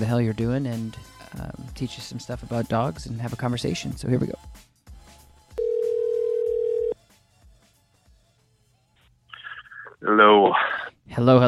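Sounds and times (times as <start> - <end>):
speech: 0.0 - 4.7, 11.2 - 11.4
telephone dial tone: 5.6 - 7.0.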